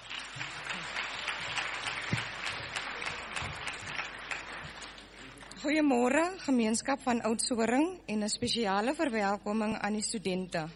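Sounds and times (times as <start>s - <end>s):
audience applause: 0.0s - 5.6s
speech: 5.6s - 10.7s.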